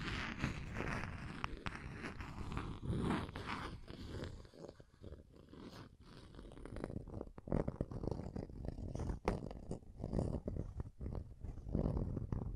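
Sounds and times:
scratching and tracing strokes on a surface: 0.0 - 12.4.

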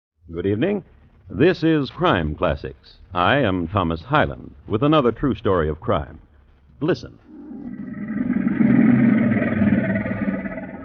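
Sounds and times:
speech: 0.3 - 7.8
crocodiles roaring: 7.3 - 10.8.

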